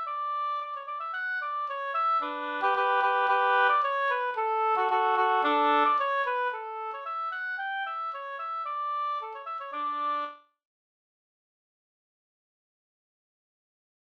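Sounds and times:
folk walking tune: 0.0s - 10.4s.

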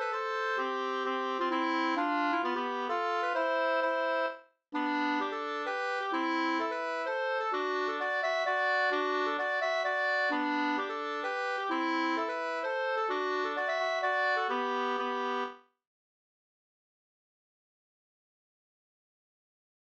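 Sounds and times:
hambo polska folk dance tune: 0.0s - 15.6s.

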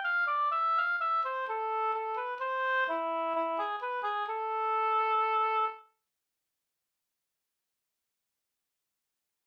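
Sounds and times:
Swedish folk walking tune: 0.0s - 5.9s.

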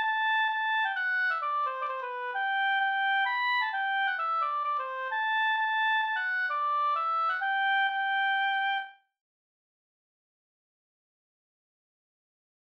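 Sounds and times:
Rorospols folk dance tune: 0.0s - 8.6s.

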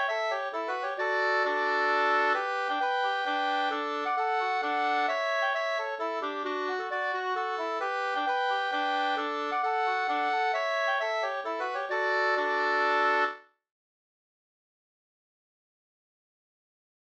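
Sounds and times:
hambopolska folk dance tune in D major: 0.0s - 13.4s.

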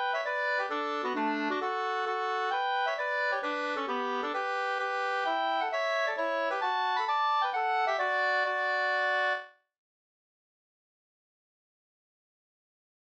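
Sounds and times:
hambo polska folk dance tune: 0.0s - 9.5s.

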